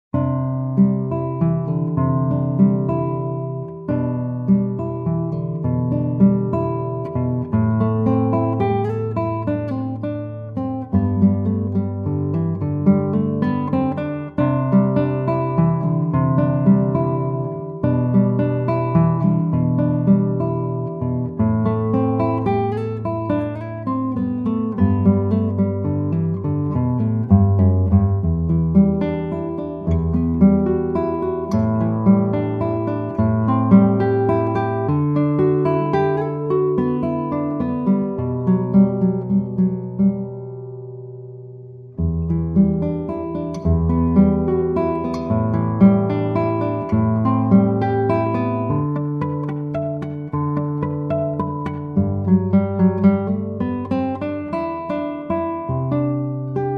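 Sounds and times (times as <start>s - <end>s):
guitar lullaby: 0.1s - 56.7s.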